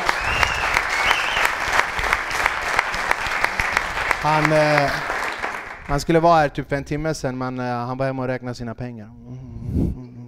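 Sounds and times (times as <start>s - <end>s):
audience applause: 0.0s - 6.2s
speech: 4.2s - 5.1s, 5.9s - 10.0s.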